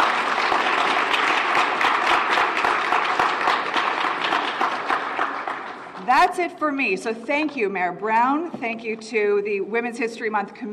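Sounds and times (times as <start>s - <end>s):
round of applause for the honorees: 0.0s - 6.1s
speech: 6.2s - 10.7s.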